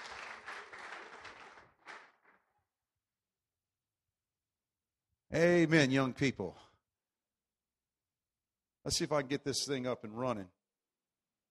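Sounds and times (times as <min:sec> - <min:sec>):
audience clapping hands: 0:00.0 - 0:02.6
speech: 0:05.3 - 0:06.6, 0:08.8 - 0:10.6.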